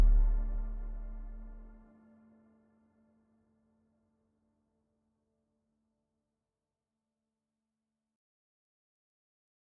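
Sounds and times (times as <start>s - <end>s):
bass heavy textural drone: 0.0s - 1.8s.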